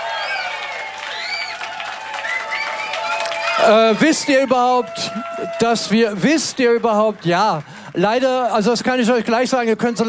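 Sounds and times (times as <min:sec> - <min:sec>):
concert audience applauding a band: 0:00.0 - 0:10.0
whistles and shouts: 0:00.1 - 0:04.6
speech: 0:03.6 - 0:10.0.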